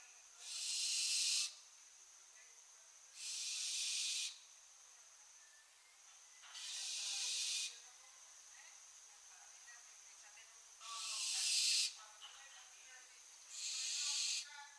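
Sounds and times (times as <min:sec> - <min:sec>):
barn owl Tyto alba screeching: 0:00.4 - 0:01.6, 0:03.2 - 0:04.4, 0:06.6 - 0:07.8, 0:10.8 - 0:12.0, 0:13.5 - 0:14.5.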